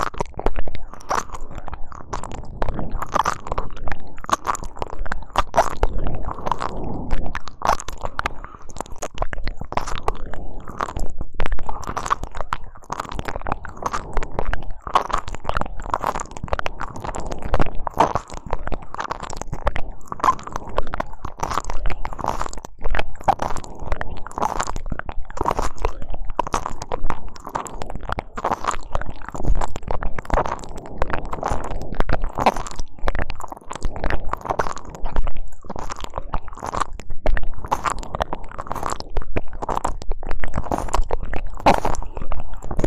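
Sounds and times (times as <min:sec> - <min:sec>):
wet ear licking: 0:00.0 - 0:42.8.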